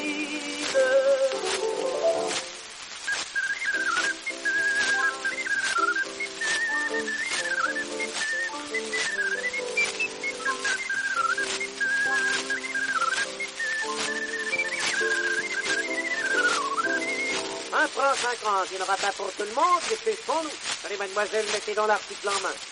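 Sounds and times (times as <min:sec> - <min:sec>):
instrumental accompaniment: 0:00.0 - 0:02.7, 0:03.6 - 0:17.8
small holed flute or whistle being blown: 0:00.0 - 0:17.8
speech: 0:18.4 - 0:22.7.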